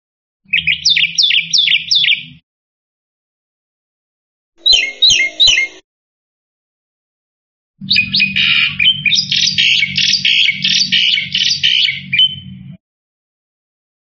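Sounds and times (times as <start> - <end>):
black-winged myna chirping: 0.5 - 2.4, 4.6 - 5.8, 7.8 - 12.8.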